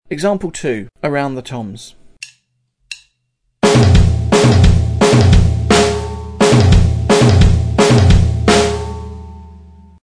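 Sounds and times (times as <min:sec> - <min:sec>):
drum set: 0:03.6 - 0:09.6.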